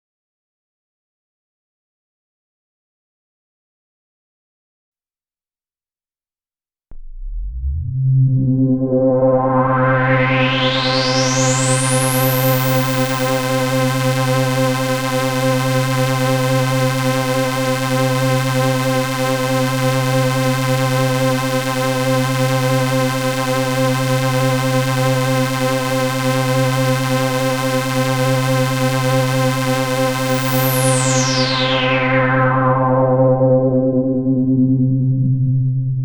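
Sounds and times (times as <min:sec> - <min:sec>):
low-pass filtered synth: 0:06.9 - 0:26.8, 0:28.1 - 0:36.0.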